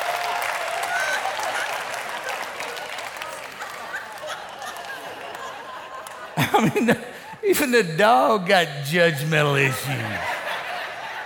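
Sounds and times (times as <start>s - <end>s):
audience applause: 0.0s - 6.4s
laughter: 3.6s - 11.2s
speech: 6.4s - 10.3s.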